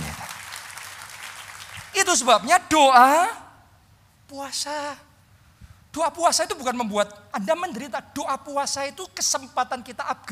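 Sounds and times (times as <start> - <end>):
audience applauding: 0.0 - 2.0
speech: 2.1 - 3.4, 4.3 - 5.1, 6.0 - 10.2.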